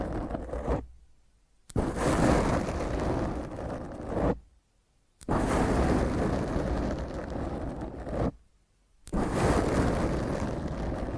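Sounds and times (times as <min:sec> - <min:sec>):
fingernails scratching across a microphone: 0:00.0 - 0:00.9, 0:01.7 - 0:04.5, 0:05.2 - 0:08.4, 0:09.1 - 0:11.1.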